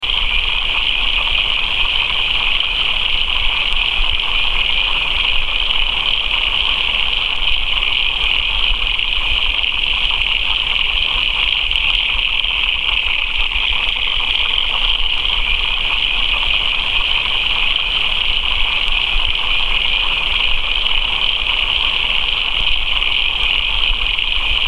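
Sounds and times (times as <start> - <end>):
frogs: 0.0 - 24.6.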